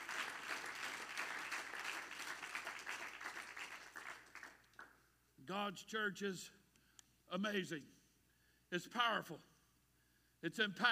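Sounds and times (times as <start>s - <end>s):
audience clapping hands: 0.0s - 5.0s
speech: 5.5s - 6.6s, 7.3s - 8.0s, 8.7s - 9.5s, 10.4s - 10.9s.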